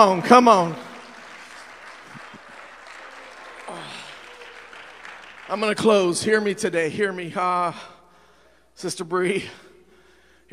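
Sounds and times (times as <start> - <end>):
speech: 0.0 - 0.8, 5.5 - 7.9, 8.8 - 9.6
audience clapping hands: 0.0 - 6.7.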